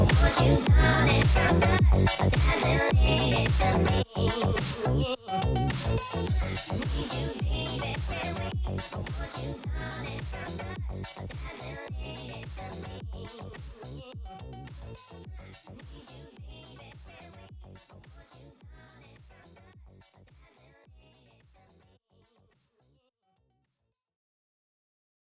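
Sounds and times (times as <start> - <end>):
funk music: 0.0 - 13.0.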